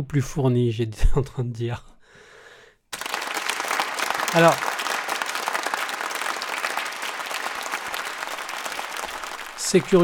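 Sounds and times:
speech: 0.0 - 1.9, 4.3 - 4.7, 9.7 - 10.0
audience applause: 2.9 - 10.0.

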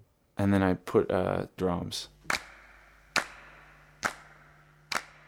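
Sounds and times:
speech: 0.4 - 2.2
hand claps in a recorded track: 2.3 - 5.2.

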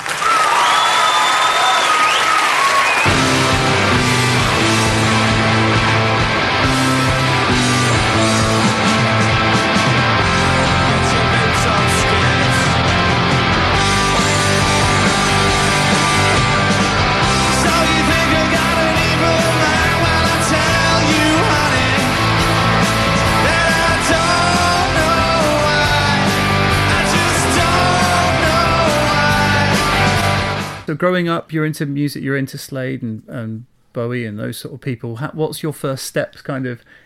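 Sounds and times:
audience applause welcoming a rock band: 0.0 - 4.9, 10.5 - 30.8
crowd yelling: 0.0 - 30.8
speech: 31.0 - 37.0.

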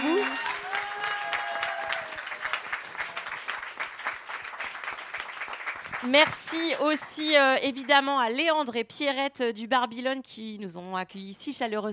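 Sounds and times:
whistles and cheers: 0.0 - 3.5
audience applause: 0.0 - 7.2
speech: 6.0 - 11.9.

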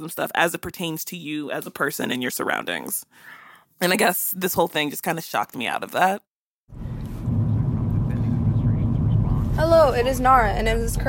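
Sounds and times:
speech: 0.0 - 6.8, 9.6 - 11.0
low rumble inside a car while driving: 6.7 - 11.0.

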